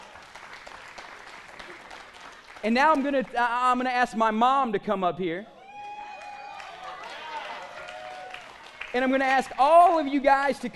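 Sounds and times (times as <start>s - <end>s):
audience hand clapping: 0.0s - 3.8s, 5.8s - 10.0s
speech: 2.6s - 5.6s, 8.9s - 10.7s.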